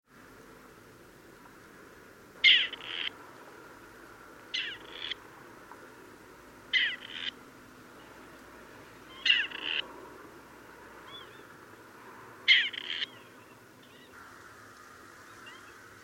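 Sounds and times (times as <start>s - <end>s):
grey partridge grating creaky two-note call: 2.4s - 3.2s, 4.5s - 5.2s, 6.7s - 7.4s, 9.1s - 9.8s, 12.4s - 16.0s.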